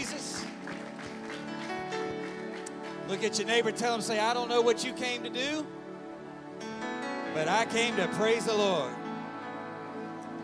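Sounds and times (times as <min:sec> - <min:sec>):
audience clapping hands: 0:00.0 - 0:04.2
speech: 0:03.1 - 0:05.8, 0:07.4 - 0:09.0.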